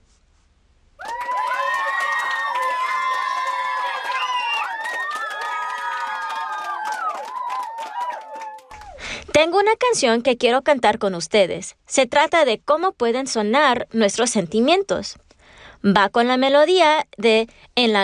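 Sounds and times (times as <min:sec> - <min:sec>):
children cheering and shouting: 0:01.0 - 0:09.0
children clapping: 0:01.0 - 0:09.0
speech: 0:09.4 - 0:15.2, 0:15.8 - 0:18.0.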